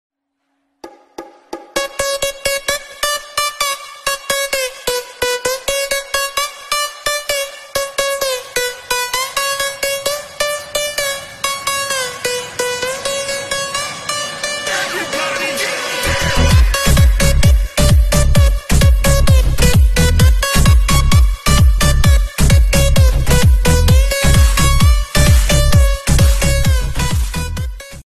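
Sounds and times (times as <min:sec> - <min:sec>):
club mix ringtone: 0:01.6 - 0:28.0.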